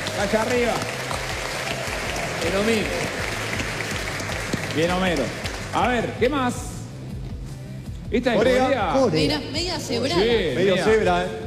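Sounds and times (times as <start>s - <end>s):
audience applause: 0.0s - 5.9s
speech: 0.2s - 1.0s, 2.4s - 3.2s, 4.8s - 6.7s, 8.1s - 11.4s.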